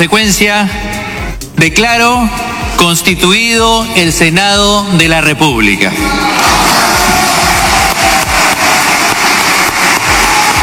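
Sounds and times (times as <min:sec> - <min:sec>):
speech: 0:00.0 - 0:06.8
loud applause in a senate chamber: 0:06.0 - 0:10.6.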